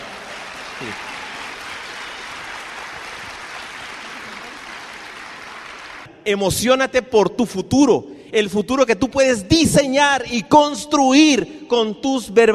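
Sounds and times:
audience applause: 0.0 - 6.1
speech: 0.8 - 1.2, 6.3 - 12.5.

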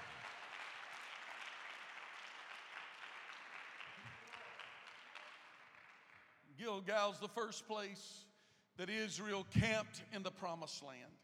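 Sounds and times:
crowd clapping in praise: 0.0 - 6.4
speech: 6.6 - 11.2.

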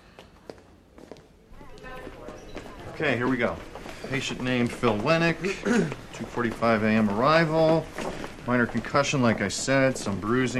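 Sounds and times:
footsteps of people walking through a hospital: 0.0 - 10.5
speech: 3.0 - 10.5.

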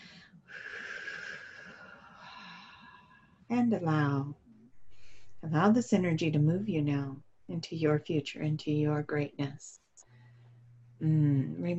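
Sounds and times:
deep breath in: 0.0 - 3.4, 4.8 - 5.4
speech: 3.5 - 4.4, 5.4 - 9.8, 11.0 - 11.7.

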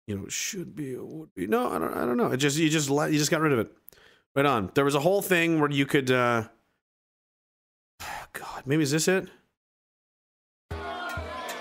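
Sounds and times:
speech: 0.1 - 6.6, 8.0 - 9.4
crowd booing: 10.7 - 11.5.

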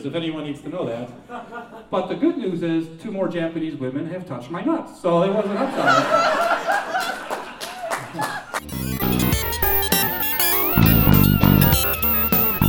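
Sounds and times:
speech: 0.0 - 7.1
crowd clapping and laughing: 5.6 - 11.1
loud music with steady beat and bright melody: 8.6 - 12.6.

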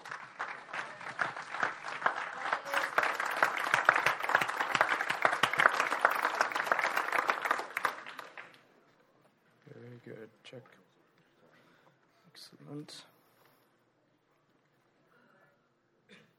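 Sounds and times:
church congregation clapping to welcome their pastor: 0.0 - 8.8
speech: 12.8 - 13.1.

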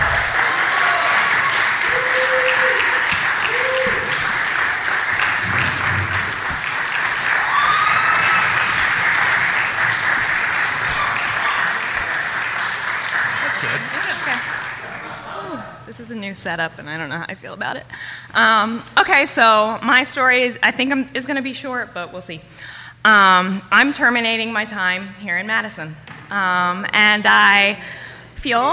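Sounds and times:
audience clapping: 0.0 - 15.2
speech: 16.4 - 28.7.

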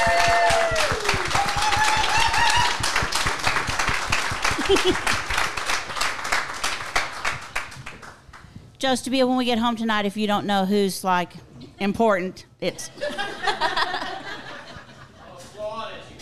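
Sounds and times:
audience clapping: 0.0 - 8.6
laughter: 4.4 - 5.2, 12.9 - 15.4
speech: 4.7 - 5.2, 8.8 - 13.7.

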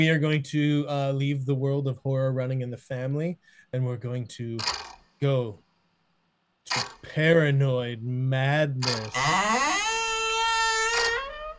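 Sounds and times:
speech: 0.0 - 5.6, 6.6 - 9.8
creaking door: 4.6 - 5.0, 6.7 - 7.1, 8.8 - 11.5.

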